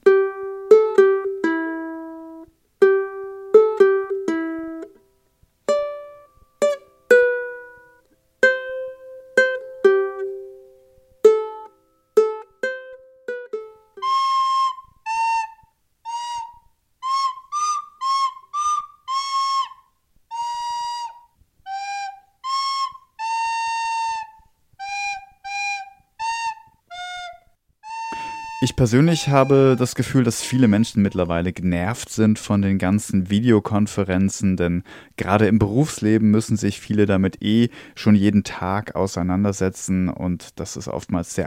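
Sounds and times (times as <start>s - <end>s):
Christmas songs played on flute and ukulele: 0.0s - 5.1s, 5.7s - 31.5s
speech: 28.6s - 41.4s.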